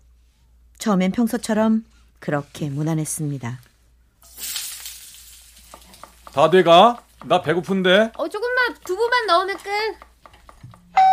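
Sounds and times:
speech: 0.8 - 3.7, 6.4 - 10.1
food sizzling in a hot pan while cooking: 4.2 - 7.8.

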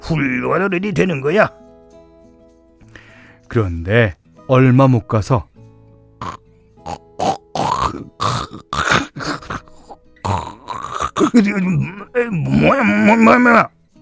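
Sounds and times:
speech: 0.1 - 1.6, 3.5 - 5.5, 6.2 - 9.6, 11.2 - 13.8
person imitating snoring: 6.2 - 13.2.

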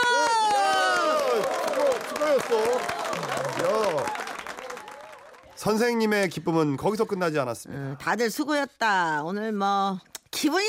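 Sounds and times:
people clapping: 0.0 - 6.4
speech: 5.6 - 10.6.

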